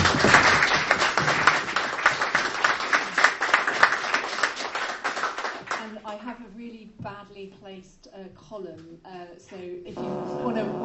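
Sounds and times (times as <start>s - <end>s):
audience applause for speakers: 0.0s - 5.8s
speech: 7.8s - 10.8s.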